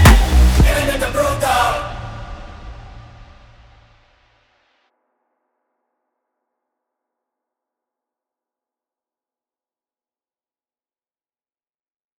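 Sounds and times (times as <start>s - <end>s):
Hindi Afro House music mix: 0.0s - 3.3s.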